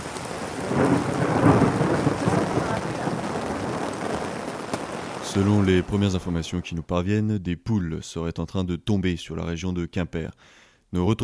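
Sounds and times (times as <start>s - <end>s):
deep roll of thunder: 0.0s - 6.6s
heavy rain: 0.0s - 6.7s
speech: 5.4s - 11.2s.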